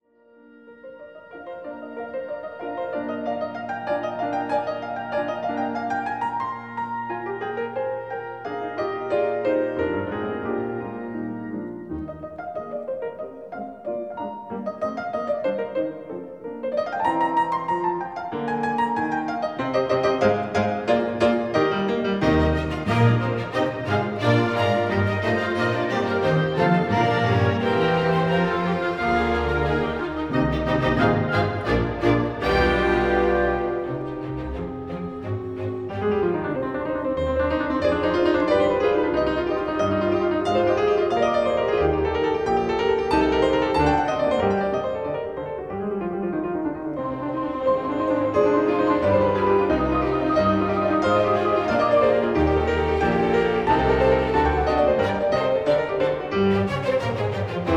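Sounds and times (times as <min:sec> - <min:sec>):
two pianos playing: 0:00.0 - 0:57.7.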